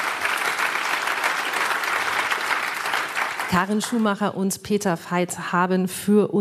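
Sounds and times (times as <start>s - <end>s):
audience applause: 0.0s - 4.2s
speech: 3.5s - 6.3s.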